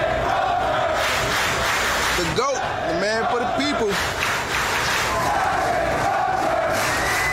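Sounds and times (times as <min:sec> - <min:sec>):
chant-like shouts: 0:00.0 - 0:01.4, 0:02.3 - 0:04.0, 0:04.9 - 0:07.3
sailors cheering departing captain: 0:00.0 - 0:07.3.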